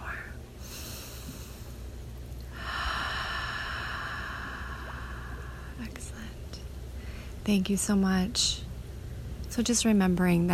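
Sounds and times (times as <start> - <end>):
deep slow breath during a guided meditation: 0.6 - 5.8
speech: 7.4 - 8.6, 9.6 - 10.5.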